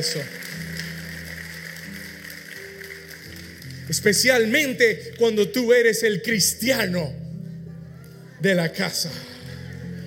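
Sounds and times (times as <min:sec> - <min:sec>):
speech: 0:00.0 - 0:00.5, 0:03.9 - 0:07.2, 0:08.4 - 0:09.3
loud audience applause: 0:00.0 - 0:04.1.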